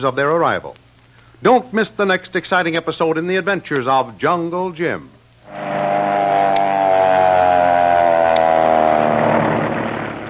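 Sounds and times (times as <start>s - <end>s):
speech: 0.0s - 0.8s, 1.4s - 5.6s
airplane making a power dive: 5.5s - 10.2s.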